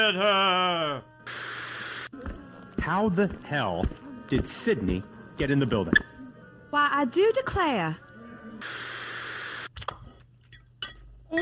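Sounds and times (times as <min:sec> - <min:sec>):
speech: 0:00.0 - 0:01.1, 0:02.1 - 0:06.1, 0:06.7 - 0:08.0
steady hiss: 0:01.3 - 0:02.1, 0:08.6 - 0:09.7.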